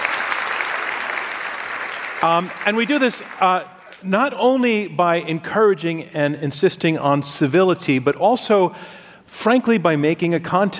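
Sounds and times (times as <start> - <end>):
audience applause: 0.0 - 4.0
speech: 2.2 - 10.7.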